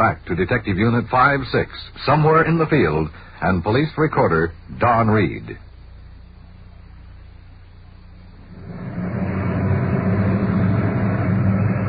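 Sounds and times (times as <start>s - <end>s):
speech: 0.0s - 5.7s
car engine rumbling as a vehicle pulls in: 8.4s - 11.8s.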